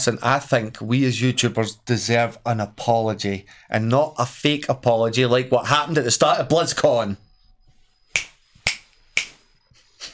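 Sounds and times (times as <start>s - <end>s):
speech: 0.0s - 7.2s
finger snaps: 8.2s - 9.4s.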